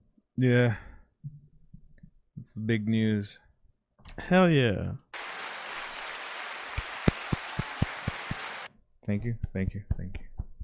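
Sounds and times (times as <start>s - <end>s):
speech: 0.4s - 0.9s, 2.4s - 3.4s, 4.1s - 5.0s, 9.1s - 10.2s
applause: 5.2s - 8.7s.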